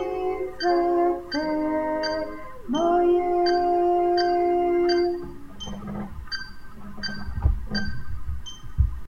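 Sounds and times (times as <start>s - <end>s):
soprano singing: 0.0s - 5.8s.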